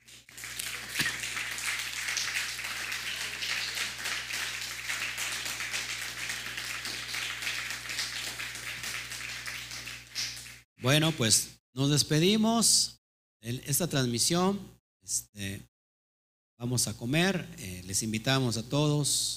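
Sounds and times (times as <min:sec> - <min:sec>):
audience applause: 0:00.0 - 0:10.6
speech: 0:10.8 - 0:15.7, 0:16.6 - 0:19.3.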